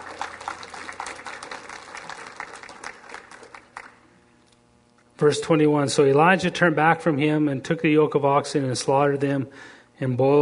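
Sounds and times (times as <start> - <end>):
audience hand clapping: 0.0 - 4.1
speech: 5.2 - 10.4.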